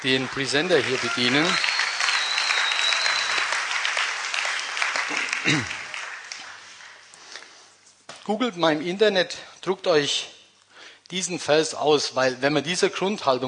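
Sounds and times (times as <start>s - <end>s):
speech: 0.0s - 1.8s, 5.5s - 5.8s, 8.3s - 10.4s, 11.1s - 13.4s
audience applause: 0.0s - 7.2s.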